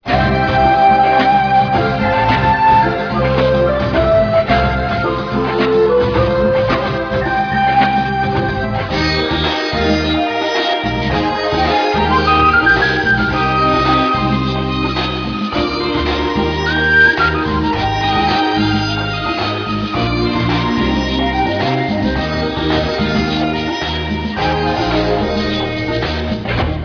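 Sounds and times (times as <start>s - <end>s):
music: 0.0s - 26.8s.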